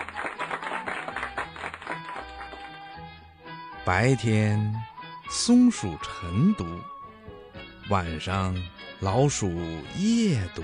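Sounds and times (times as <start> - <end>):
clapping: 0.0 - 3.0
speech: 3.9 - 6.9, 7.9 - 10.6.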